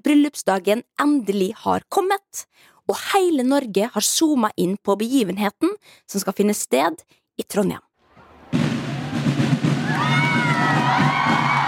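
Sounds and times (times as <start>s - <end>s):
speech: 0.0s - 7.9s
crowd cheering: 8.1s - 11.6s.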